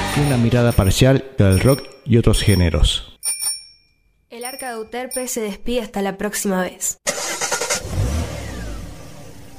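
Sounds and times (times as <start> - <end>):
speech: 0.2 - 3.1, 4.4 - 7.1
car engine starting and revving: 7.1 - 9.5.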